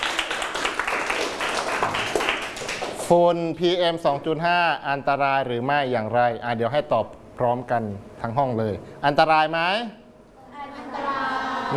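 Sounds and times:
students clapping for a classmate during a lesson on PM 2.5 dust: 0.0 - 3.1
speech: 3.1 - 10.0.

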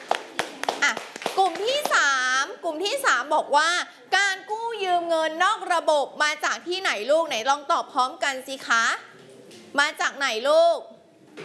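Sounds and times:
class applauding a group of students: 0.0 - 2.2
speech: 2.6 - 9.1, 9.7 - 11.4.

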